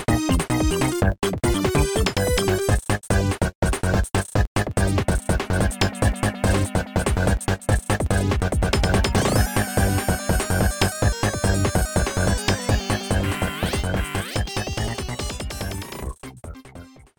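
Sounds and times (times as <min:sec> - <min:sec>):
fortress boss battle music: 0:00.1 - 0:16.1.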